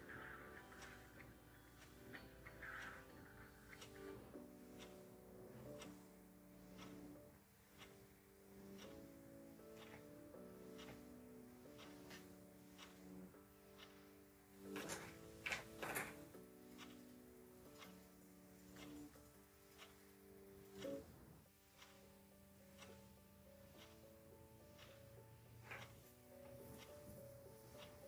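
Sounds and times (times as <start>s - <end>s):
mellow lofi instrumental, kpop instrumental: 0.0s - 28.0s
ticking clock: 0.0s - 28.0s.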